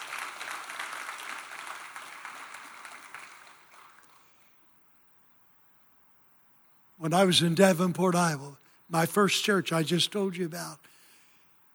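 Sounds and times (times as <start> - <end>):
audience clapping: 0.0 - 4.5
speech: 7.0 - 10.9.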